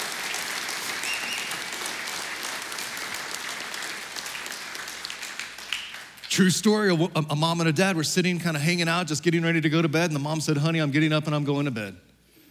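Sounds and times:
large audience applauding: 0.0 - 7.0
speech: 6.4 - 12.1.

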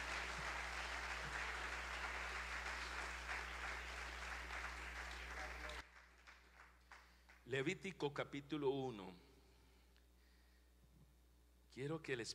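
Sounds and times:
audience applause: 0.0 - 7.4
speech: 7.5 - 9.2, 11.7 - 12.3.

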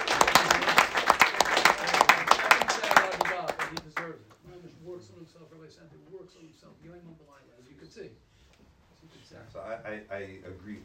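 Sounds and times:
audience applause: 0.0 - 4.0
speech: 5.0 - 8.4, 9.0 - 10.8.

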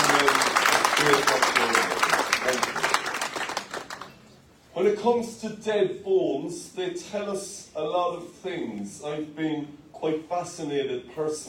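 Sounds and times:
in-person audience applause: 0.0 - 4.2
speech: 1.0 - 1.5, 5.0 - 11.4.

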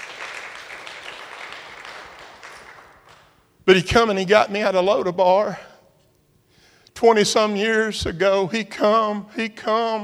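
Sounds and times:
audience applause: 0.0 - 3.4
speech: 3.7 - 5.7, 7.0 - 10.0.

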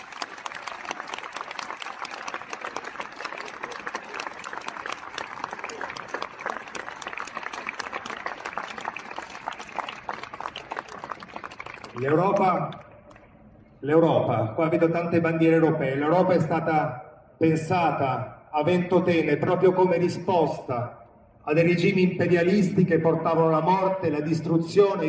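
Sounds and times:
large outdoor crowd applauding in a public square: 0.0 - 13.2
speech: 12.0 - 12.8, 13.8 - 25.0.

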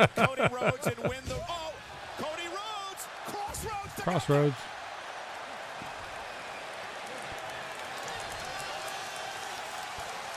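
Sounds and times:
speech: 0.0 - 1.6, 4.0 - 4.7
laughter: 0.0 - 1.8
arena crowd cheering: 0.0 - 10.3.

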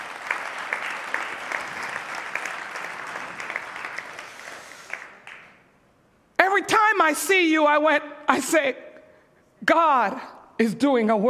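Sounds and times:
audience applauding: 0.0 - 5.7
speech: 7.0 - 8.8, 9.7 - 11.2.

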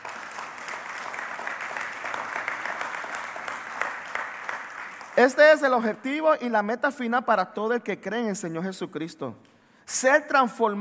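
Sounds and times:
audience applause: 0.0 - 5.4
speech: 5.2 - 10.8.

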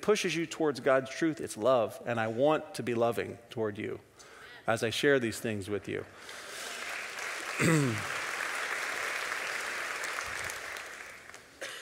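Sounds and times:
speech: 0.0 - 4.1, 4.7 - 6.5, 7.6 - 8.2
audience applause: 6.2 - 11.6.

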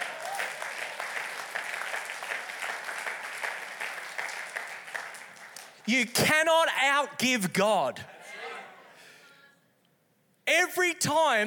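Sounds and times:
audience applause: 0.0 - 5.9
speech: 5.9 - 8.1, 10.7 - 11.4.

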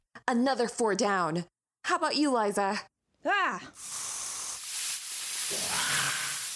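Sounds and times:
speech: 0.3 - 3.9
weed killer spray hissing: 3.8 - 6.5.

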